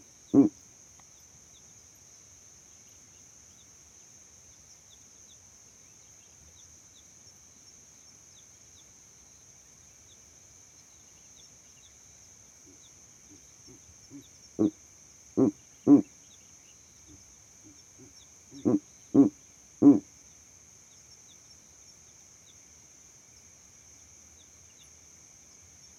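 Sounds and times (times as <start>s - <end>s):
owl hooting at night: 0.3s - 0.5s, 13.7s - 14.7s, 15.4s - 16.1s, 18.0s - 20.0s.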